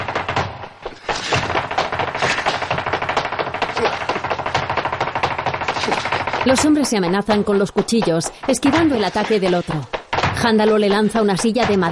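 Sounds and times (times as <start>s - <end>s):
flamenco footwork stamping with heel and toe strikes: 0.0s - 11.9s
speech: 6.5s - 11.9s.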